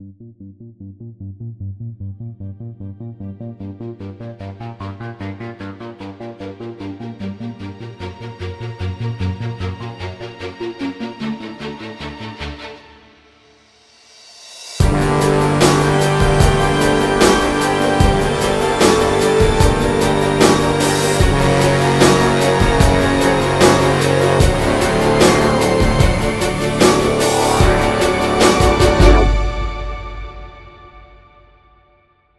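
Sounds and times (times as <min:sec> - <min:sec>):
rock drums: 0:14.8 - 0:30.6.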